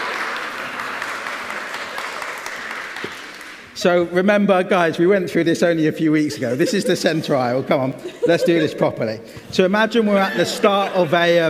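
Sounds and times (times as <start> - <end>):
audience applause: 0.0 - 3.8
speech: 3.8 - 11.4
laughter: 6.2 - 11.4.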